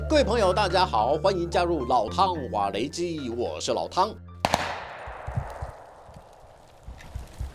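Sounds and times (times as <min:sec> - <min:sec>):
speech: 0:00.1 - 0:04.3
gunfire in close-range combat: 0:04.4 - 0:06.1.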